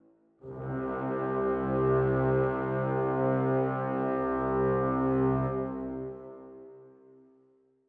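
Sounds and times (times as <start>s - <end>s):
dramatic brass: 0.4s - 6.7s.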